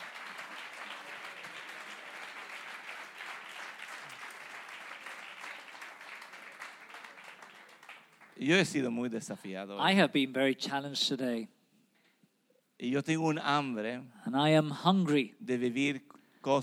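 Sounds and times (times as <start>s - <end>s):
audience applause: 0.0s - 8.4s
speech: 8.4s - 11.6s, 12.8s - 16.6s.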